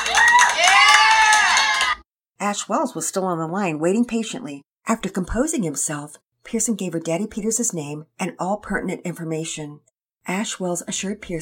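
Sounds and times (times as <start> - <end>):
cheering and clapping: 0.0 - 2.1
speech: 2.4 - 11.3.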